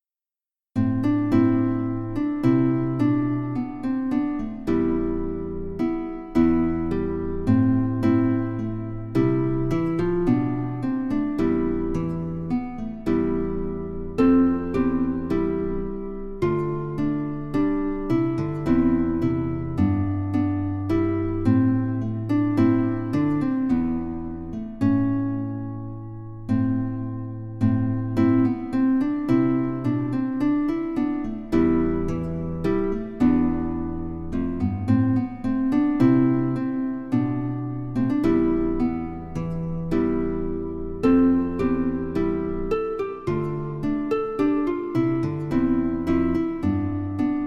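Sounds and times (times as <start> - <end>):
guitar: 0.8 - 47.4.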